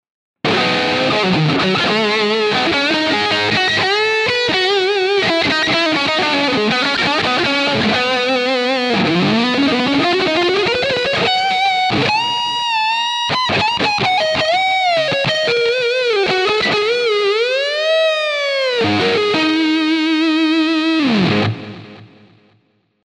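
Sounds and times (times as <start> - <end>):
Sterling Majesty X neck humbucker electric guitar lead: 0.4 - 22.7.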